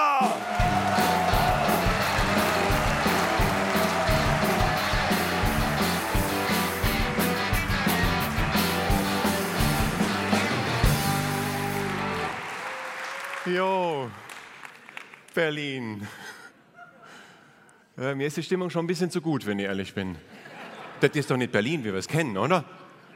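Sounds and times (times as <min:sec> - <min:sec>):
frenetic audience applause: 0:00.2 - 0:15.2
speech: 0:13.5 - 0:14.2, 0:15.4 - 0:16.3, 0:18.0 - 0:20.3, 0:21.0 - 0:22.8.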